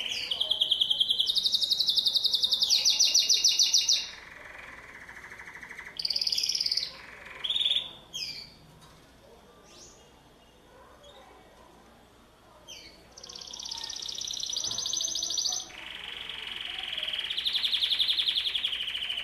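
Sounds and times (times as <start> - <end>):
canary singing: 0.0 - 8.6, 12.7 - 19.2.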